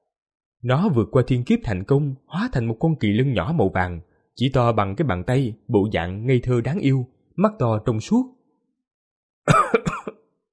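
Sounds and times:
speech: 0:00.6 - 0:08.4
man coughing up blood: 0:09.5 - 0:10.3.

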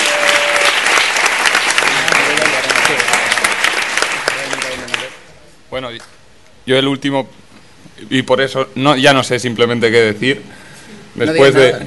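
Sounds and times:
audience applause: 0:00.0 - 0:05.2
speech: 0:05.8 - 0:10.6, 0:11.2 - 0:11.8.

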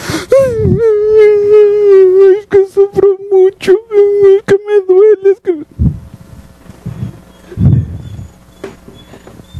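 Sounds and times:
voice mockingly imitating whimpering crying: 0:00.0 - 0:05.7.

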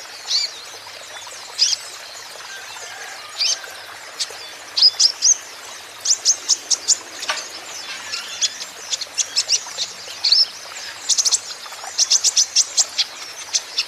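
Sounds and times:
Van Hasselt's sunbird song: 0:00.0 - 0:13.8.

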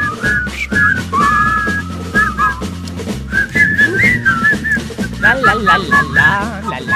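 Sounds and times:
low backing music: 0:00.0 - 0:06.9
person whistling a tune: 0:00.0 - 0:06.9
speech: 0:05.6 - 0:06.9.

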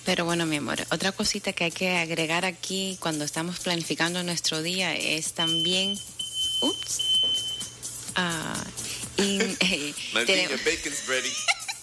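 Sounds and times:
speech: 0:00.1 - 0:07.4, 0:08.2 - 0:11.6
alarm clock beeping: 0:05.4 - 0:07.8
laughter: 0:09.2 - 0:11.8.

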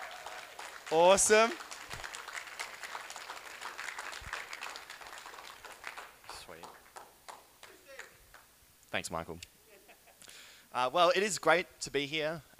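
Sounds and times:
applause at a church gathering: 0:00.0 - 0:08.5
speech: 0:00.9 - 0:01.7, 0:09.0 - 0:09.6, 0:10.8 - 0:12.5.

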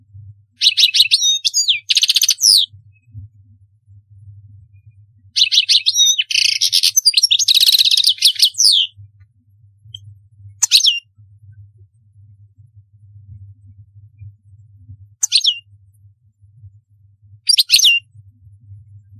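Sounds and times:
European goldfinch song: 0:00.5 - 0:03.2, 0:05.3 - 0:09.0, 0:09.9 - 0:11.2, 0:15.2 - 0:15.7, 0:17.5 - 0:18.1
low hum: 0:02.7 - 0:05.4, 0:08.6 - 0:17.4.

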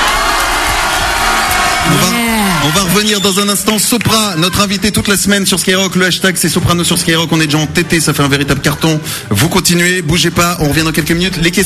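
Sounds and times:
audience cheering and shouting: 0:00.0 - 0:05.5
speech: 0:01.9 - 0:11.6.

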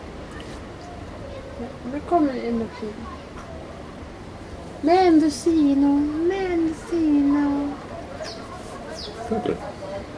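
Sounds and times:
birds: 0:00.3 - 0:05.7, 0:06.4 - 0:10.1
speech: 0:01.6 - 0:03.4, 0:04.8 - 0:07.6, 0:09.3 - 0:10.1.

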